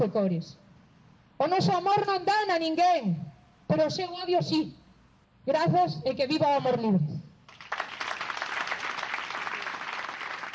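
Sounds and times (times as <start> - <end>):
speech: 0.0 - 0.6, 1.4 - 4.8, 5.5 - 7.1
crowd applauding a speech: 7.5 - 10.5.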